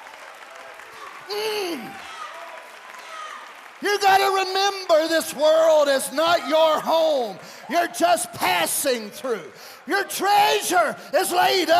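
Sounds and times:
crowd clapping: 0:00.0 - 0:11.7
speech: 0:01.3 - 0:02.1, 0:03.8 - 0:11.7.

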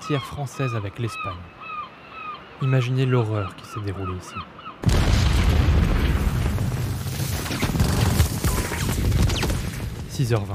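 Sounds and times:
speech: 0:00.1 - 0:01.6, 0:02.6 - 0:04.6, 0:10.2 - 0:10.5
bombing explosions on the coast: 0:04.8 - 0:10.2.

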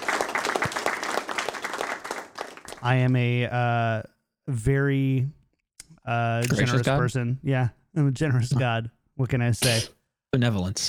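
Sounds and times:
applause: 0:00.0 - 0:03.1
speech: 0:02.8 - 0:05.4, 0:06.1 - 0:10.8.

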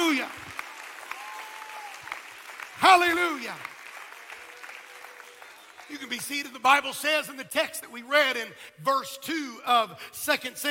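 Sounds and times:
crowd clapping: 0:00.0 - 0:07.1
speech: 0:02.8 - 0:03.7, 0:05.9 - 0:10.6.

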